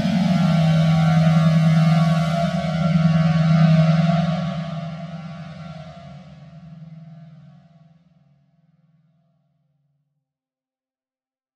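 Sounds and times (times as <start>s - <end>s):
soundscape: 0.0s - 7.7s.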